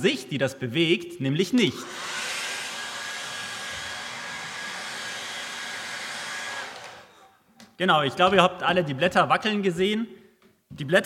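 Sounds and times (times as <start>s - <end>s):
speech: 0.0s - 2.1s, 7.8s - 11.0s
electric blower device blowing air: 1.8s - 7.2s.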